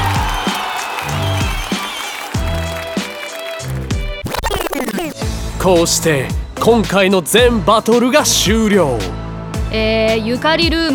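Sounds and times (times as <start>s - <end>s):
audience applause: 0.0s - 5.0s
speech: 5.6s - 10.9s.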